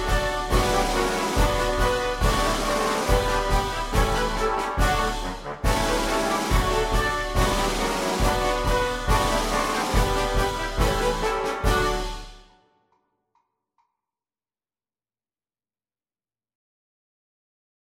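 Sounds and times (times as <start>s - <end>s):
march music: 0.0s - 12.8s.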